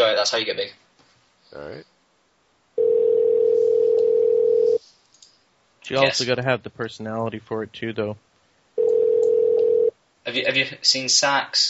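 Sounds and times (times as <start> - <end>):
speech: 0.2 - 0.8, 1.5 - 1.9, 5.8 - 8.3, 10.3 - 11.6
telephone dial tone as a caller is brought in: 2.8 - 4.8, 8.8 - 9.9.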